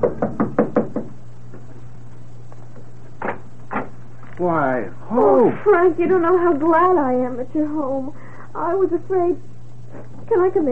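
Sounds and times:
speech: 0:00.0 - 0:00.4, 0:04.4 - 0:09.5, 0:10.3 - 0:10.7
knocking on a door: 0:00.0 - 0:01.2
low steady hum: 0:00.0 - 0:10.7.

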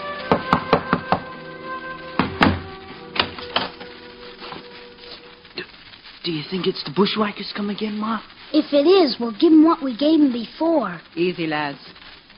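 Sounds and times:
knock on a wooden door: 0:00.3 - 0:01.3, 0:02.2 - 0:02.7
speech: 0:06.3 - 0:12.0.

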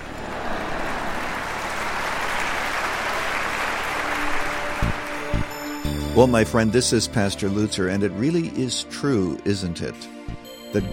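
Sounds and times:
audience clapping: 0:00.0 - 0:06.0
speech: 0:06.2 - 0:10.9.

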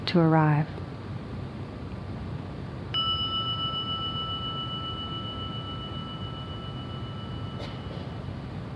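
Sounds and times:
speech: 0:00.1 - 0:00.8
gong struck and resonating: 0:03.0 - 0:08.6.

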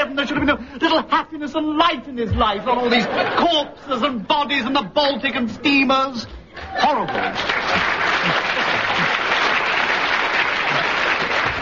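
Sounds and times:
speech: 0:00.2 - 0:08.4
laughter: 0:02.6 - 0:05.2, 0:07.1 - 0:09.7
audience applauding: 0:06.6 - 0:11.6.

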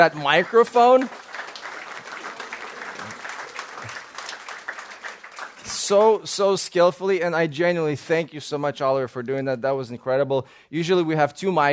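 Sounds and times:
speech: 0:00.0 - 0:01.2, 0:05.9 - 0:11.7
audience of about twenty to twenty-five people clapping: 0:00.0 - 0:06.5.

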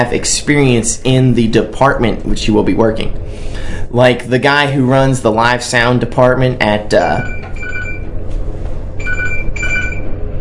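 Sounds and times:
speech: 0:00.0 - 0:07.4
low hum: 0:00.0 - 0:10.3
government emergency alert on a mobile phone: 0:07.2 - 0:08.1, 0:09.0 - 0:10.2.

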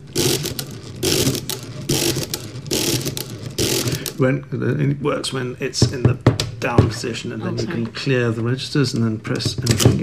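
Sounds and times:
mechanical calculator churning through an addition: 0:00.0 - 0:04.2, 0:09.8 - 0:10.0
speech: 0:04.2 - 0:10.0.

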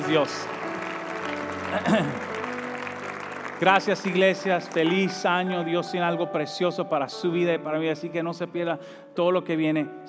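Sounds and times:
audience applauding: 0:00.0 - 0:06.0
speech: 0:00.1 - 0:00.6, 0:01.7 - 0:02.3, 0:03.6 - 0:10.0.

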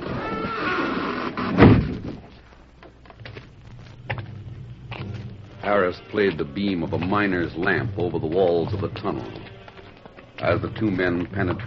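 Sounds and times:
heavy concealed door sliding shut: 0:00.0 - 0:02.1
faint low hum: 0:00.0 - 0:11.6
speech: 0:05.7 - 0:09.6, 0:10.4 - 0:11.6.

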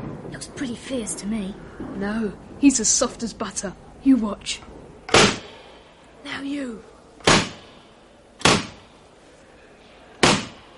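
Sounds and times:
speech: 0:00.3 - 0:05.4, 0:06.4 - 0:07.4
school desk lids slamming shut: 0:05.1 - 0:05.5, 0:07.2 - 0:07.6, 0:08.4 - 0:08.8.

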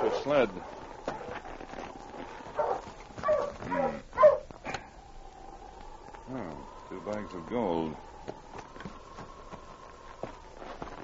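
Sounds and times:
faint hiss: 0:00.0 - 0:11.0
speech: 0:00.2 - 0:00.8, 0:06.3 - 0:08.4
sled dog barking: 0:02.6 - 0:04.5.

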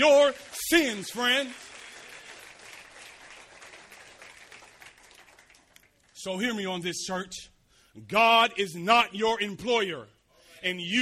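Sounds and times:
speech: 0:00.0 - 0:01.7, 0:06.2 - 0:11.0
audience hand clap: 0:00.0 - 0:06.2.

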